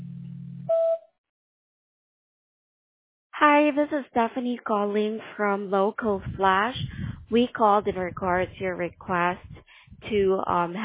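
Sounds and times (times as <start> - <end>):
voicemail beep: 0.7 - 1.0
speech: 3.4 - 10.8.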